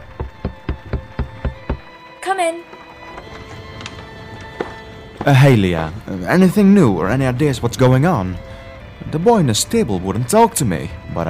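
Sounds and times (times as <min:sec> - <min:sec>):
knocking on a wooden door: 0:00.0 - 0:01.9
speech: 0:02.3 - 0:02.8, 0:05.2 - 0:08.5, 0:09.1 - 0:11.2.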